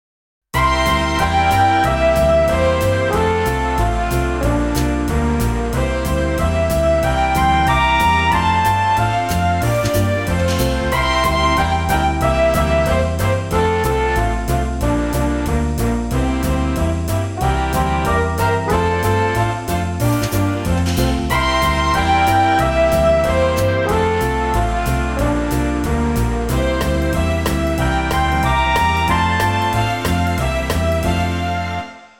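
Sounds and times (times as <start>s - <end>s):
big band ballad: 0.6s - 32.1s.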